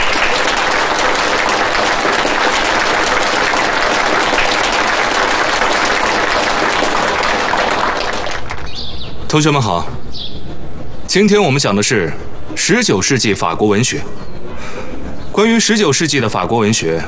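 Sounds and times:
warm audience applause: 0.0s - 8.8s
speech: 9.3s - 10.2s, 11.1s - 14.8s, 15.4s - 17.0s.

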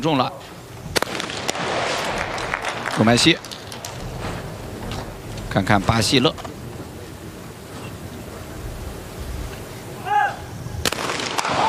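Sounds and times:
speech: 0.0s - 0.6s, 3.0s - 3.5s, 5.5s - 6.4s
low noise: 0.0s - 11.6s
gunshots at a shooting competition: 0.9s - 4.4s, 10.8s - 11.6s.

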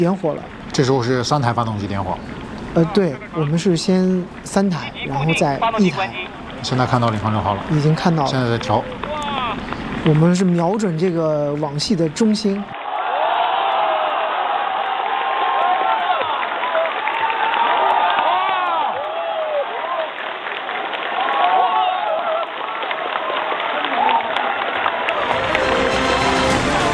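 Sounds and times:
speech: 0.0s - 9.0s, 10.0s - 12.8s
crowd cheering and whooping while watching a rocket landing: 8.7s - 9.7s, 12.7s - 26.9s.

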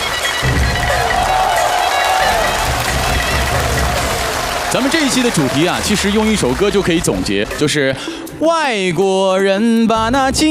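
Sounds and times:
studio audience applause and cheering on a Peking opera television show: 0.0s - 7.9s
speech: 4.7s - 10.5s.

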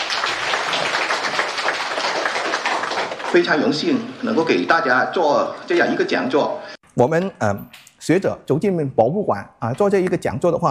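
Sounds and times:
audience applause: 0.0s - 4.0s
speech: 3.3s - 10.6s.

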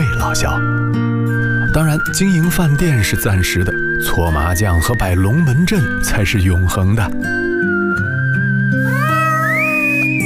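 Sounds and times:
speech: 0.3s - 7.7s
newborn kitten meowing: 8.8s - 10.2s.

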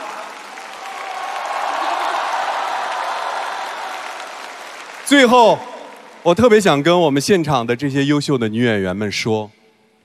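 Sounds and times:
crowd applause: 0.0s - 6.5s
speech: 5.1s - 9.6s.

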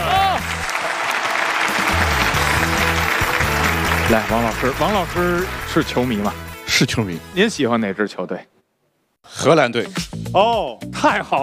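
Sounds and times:
audience applause welcoming guest: 0.0s - 6.5s
speech: 4.1s - 8.5s, 9.2s - 11.4s.

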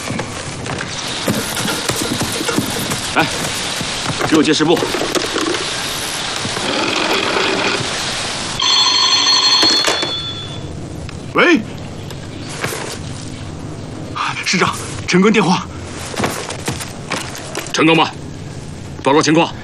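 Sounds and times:
voices talking: 0.0s - 19.6s
telephone ringing with buzzing electronic tone: 8.6s - 10.8s.

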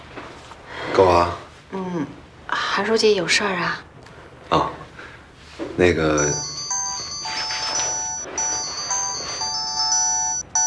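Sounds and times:
speech: 1.0s - 2.2s, 2.8s - 3.9s, 4.5s - 4.7s, 5.8s - 6.5s
phone ringing with bright electronic melody: 6.2s - 10.6s.

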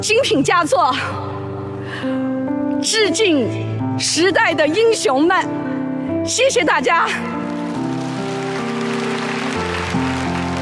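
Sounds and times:
speech: 0.0s - 5.6s, 6.2s - 7.4s
audience applause: 7.6s - 10.6s.

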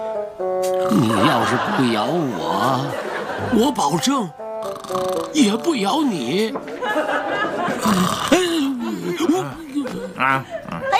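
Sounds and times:
speech: 0.0s - 8.5s, 9.3s - 10.9s
man snoring like a cartoon snore: 0.8s - 1.4s, 4.6s - 5.6s, 7.8s - 9.6s
laughter: 0.9s - 4.0s, 6.0s - 10.9s.

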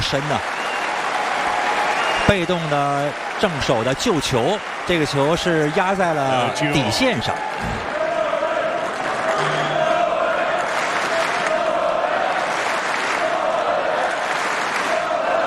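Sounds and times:
tennis crowd cheering and applauding: 0.0s - 15.4s
speech: 0.1s - 0.6s, 2.3s - 7.9s
sustained chant-like tone: 7.6s - 12.4s.

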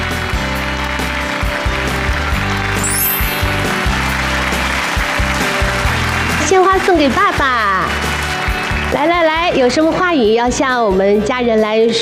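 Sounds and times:
audience applause: 0.0s - 9.4s
upbeat music: 0.0s - 12.0s
speech: 6.5s - 7.5s, 8.9s - 12.0s.

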